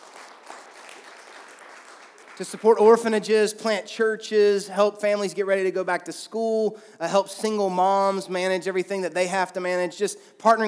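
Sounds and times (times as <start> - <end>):
audience clapping: 0.0 - 3.1
speech: 2.4 - 10.6.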